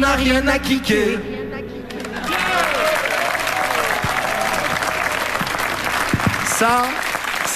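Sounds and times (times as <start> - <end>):
speech: 0.0 - 1.3, 6.6 - 7.5
audience applause: 1.9 - 7.5.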